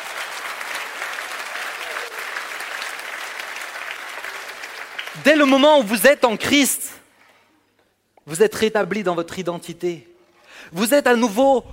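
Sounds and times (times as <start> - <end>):
church congregation applauding to acclaim the Lord: 0.0 - 7.3
speech: 5.2 - 6.9, 8.3 - 11.7.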